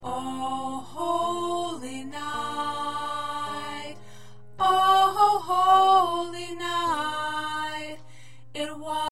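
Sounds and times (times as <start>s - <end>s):
alto choir part singing: 0.0s - 8.0s.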